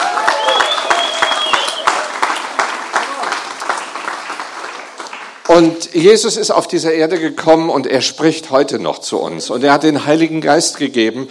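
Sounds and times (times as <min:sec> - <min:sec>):
audience applause: 0:00.0 - 0:05.7
speech: 0:05.6 - 0:11.3.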